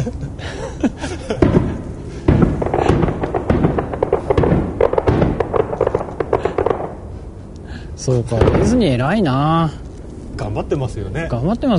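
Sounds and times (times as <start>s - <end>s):
speech: 0.0s - 1.4s, 8.0s - 9.8s, 10.4s - 11.7s
laughter: 0.0s - 1.9s
Mickey Mouse fireworks exploding at Disney: 1.3s - 7.2s, 8.1s - 9.4s.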